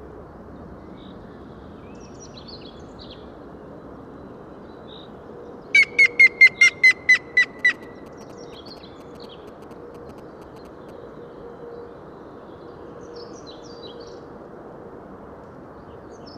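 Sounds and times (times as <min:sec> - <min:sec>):
grey-headed woodpecker calling: 0:05.8 - 0:10.9.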